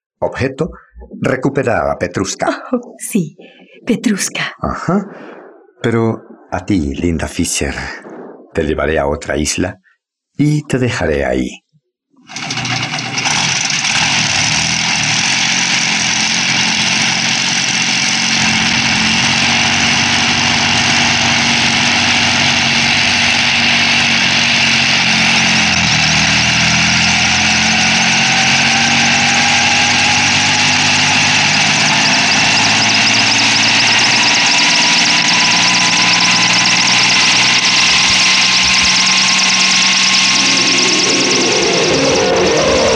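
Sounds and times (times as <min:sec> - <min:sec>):
speech: 0:00.2 - 0:11.6
helicopter engine: 0:12.3 - 0:42.9.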